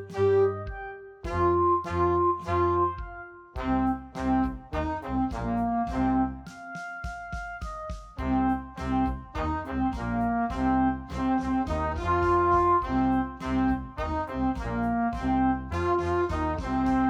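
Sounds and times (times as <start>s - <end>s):
hard rock blues clarinet: 0.0s - 17.0s.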